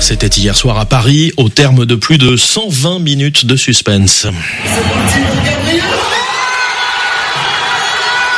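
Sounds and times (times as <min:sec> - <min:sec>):
speech: 0:00.1 - 0:05.9
huge stadium crowd roaring and cheering: 0:04.6 - 0:08.3.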